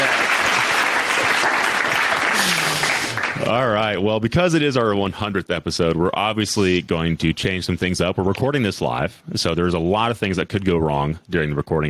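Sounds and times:
applause: 0.0s - 3.6s
speech: 3.5s - 11.8s.

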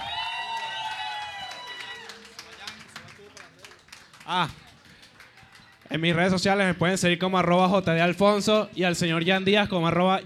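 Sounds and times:
audience applause and cheering: 0.0s - 5.9s
speech: 4.3s - 4.6s, 5.9s - 10.2s.

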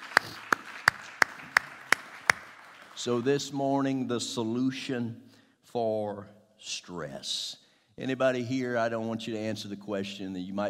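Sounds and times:
audience hand clapping in praise: 0.0s - 3.3s
speech: 3.0s - 10.6s.

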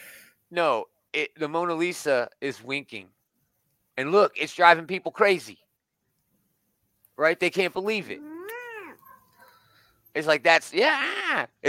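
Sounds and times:
speech: 0.5s - 3.2s, 4.0s - 5.6s, 7.2s - 8.3s, 10.1s - 11.6s
cat meowing: 8.2s - 9.1s.

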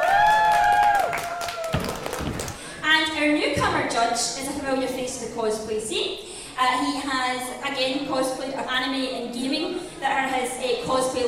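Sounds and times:
high whoop or whistle: 0.0s - 1.8s
audience clapping steadily: 0.0s - 2.7s
speech: 3.2s - 11.2s.

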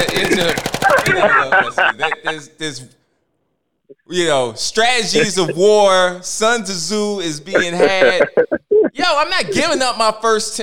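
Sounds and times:
machine gun fire sound effect: 0.0s - 1.1s
laughter: 0.0s - 2.8s, 5.2s - 5.7s, 7.6s - 8.4s
speech: 0.3s - 3.0s, 3.9s - 10.6s.

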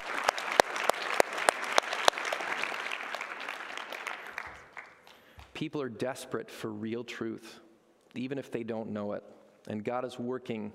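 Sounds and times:
audience clapping: 0.0s - 5.6s
speech: 5.6s - 7.6s, 8.2s - 10.7s.

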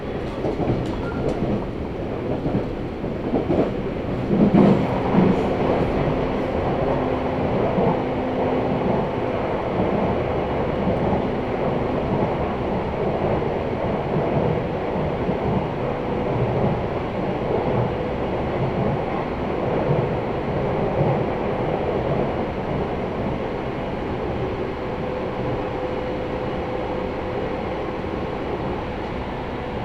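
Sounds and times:
train running on the Sasebo Line: 0.0s - 29.8s
clanks and clicks: 0.1s - 1.7s.

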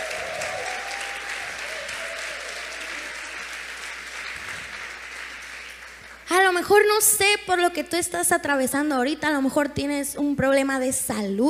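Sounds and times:
audience applause: 0.0s - 6.3s
speech: 6.4s - 11.4s.

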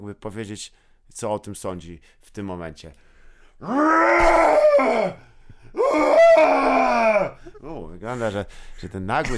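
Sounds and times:
speech: 0.0s - 9.3s
voice imitating a bear growling: 3.6s - 5.2s, 5.8s - 7.4s.

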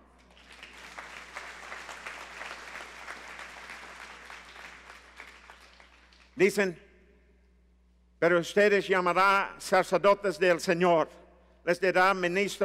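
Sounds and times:
audience applause: 0.3s - 6.4s
speech: 6.4s - 6.9s, 8.2s - 12.6s.

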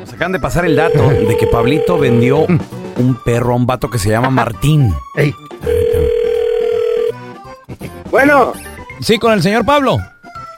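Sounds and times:
speech: 0.0s - 5.8s, 8.1s - 10.1s
telephone dial tone: 0.7s - 2.5s, 5.6s - 7.1s.

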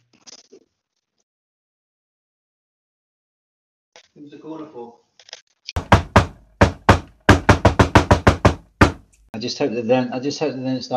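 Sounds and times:
speech: 4.2s - 5.0s, 9.4s - 10.9s
knocking on a door: 5.8s - 9.1s.

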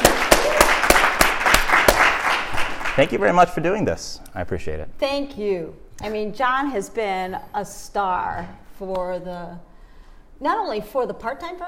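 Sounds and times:
group applauding: 0.0s - 3.5s
speech: 3.0s - 9.7s, 10.4s - 11.6s.

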